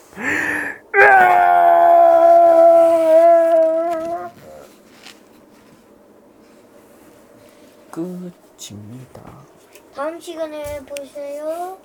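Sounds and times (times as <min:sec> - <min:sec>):
tyrannosaurus cry echoing over night sea: 0:00.0 - 0:04.8
speech: 0:00.1 - 0:00.5, 0:08.6 - 0:11.8.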